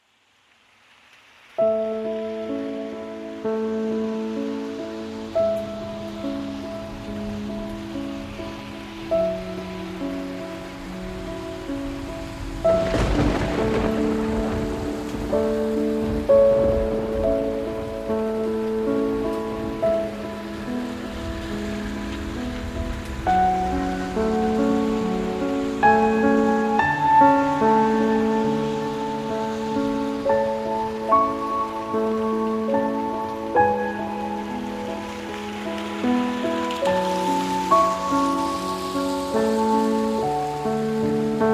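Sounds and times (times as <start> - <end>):
piano: 0.0 - 41.5
rain: 0.0 - 41.5.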